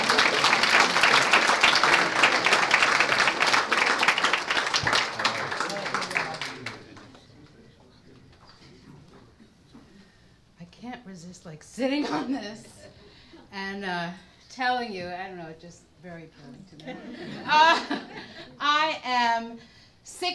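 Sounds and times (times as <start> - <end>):
audience applause: 0.0 - 7.2
speech: 11.8 - 12.8, 13.7 - 20.3
laughter: 16.9 - 18.6.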